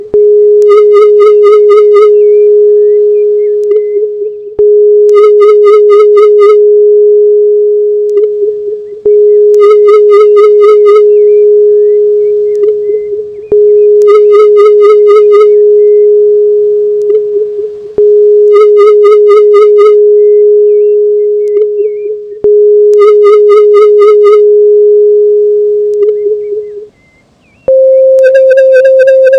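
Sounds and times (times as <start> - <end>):
solfeggio ambience: 0.0 - 29.3.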